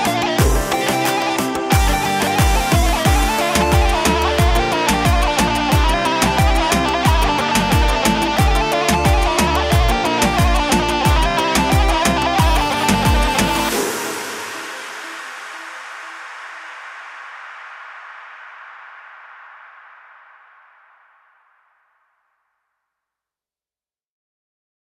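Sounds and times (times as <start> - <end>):
Kurdish music mashup: 0.0 - 16.7.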